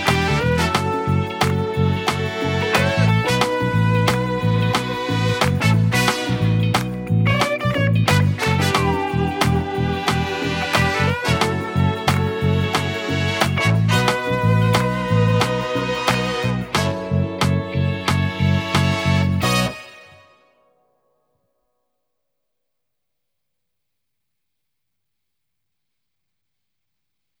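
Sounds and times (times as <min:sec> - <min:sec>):
backing track: 0:00.0 - 0:20.4.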